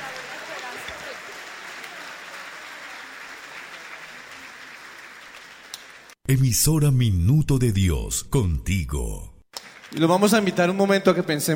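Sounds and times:
audience applause: 0.0s - 6.2s, 9.6s - 10.8s
speech: 6.3s - 9.3s, 9.9s - 11.5s.

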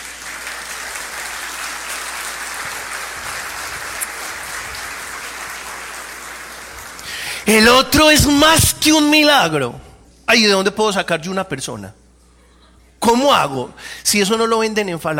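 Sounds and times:
loud audience applause: 0.0s - 7.4s
speech: 7.5s - 12.0s, 13.0s - 15.1s.

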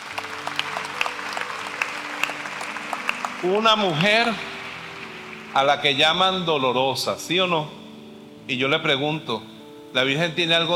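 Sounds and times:
audience applause: 0.0s - 6.6s
speech: 3.4s - 4.5s, 5.5s - 7.8s, 8.5s - 10.7s.

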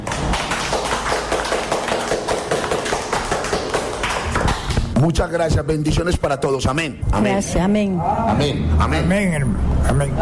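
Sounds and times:
audience clapping in a church: 0.0s - 5.0s
speech: 5.0s - 10.2s.

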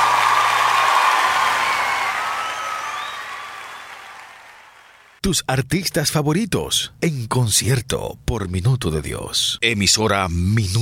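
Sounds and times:
scattered cheers and whoops: 0.0s - 5.0s
crowd applauding: 0.0s - 5.2s
speech: 5.3s - 10.8s.

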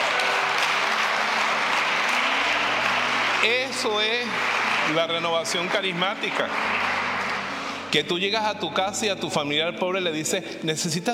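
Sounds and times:
audience applause: 0.0s - 8.2s
speech: 3.4s - 7.0s, 7.9s - 11.1s.

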